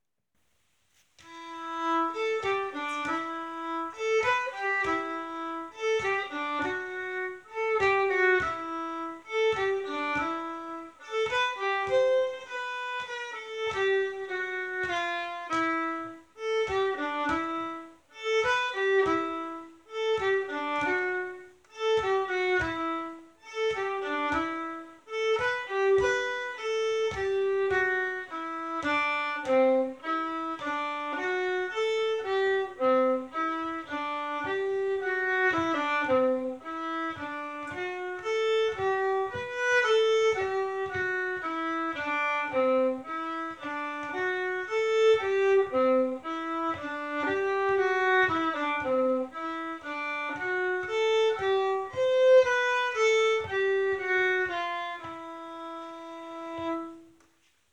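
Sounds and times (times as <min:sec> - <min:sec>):
polska countermelody: 0:01.2 - 0:57.5.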